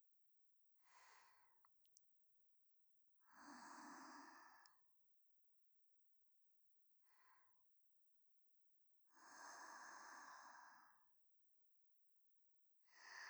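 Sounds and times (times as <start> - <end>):
person breathing in sleep in the left channel: 3.3 - 4.8, 9.2 - 11.0, 12.9 - 13.2.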